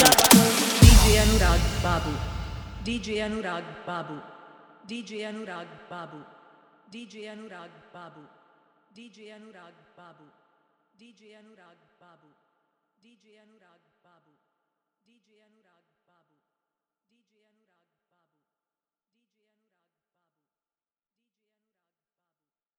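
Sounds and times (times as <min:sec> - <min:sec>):
hard dholki bass mix: 0:00.0 - 0:03.4.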